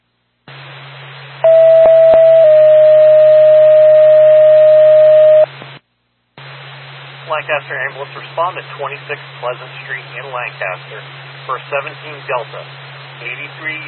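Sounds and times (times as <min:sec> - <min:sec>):
radio dispatch alert tones before ambulance call: 0:01.4 - 0:05.5
radio static: 0:07.2 - 0:13.8
speech: 0:07.4 - 0:13.8.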